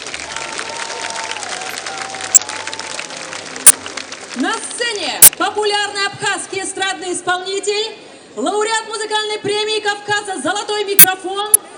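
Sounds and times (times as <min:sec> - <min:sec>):
audience applause: 0:00.0 - 0:05.0
speech: 0:05.6 - 0:11.7.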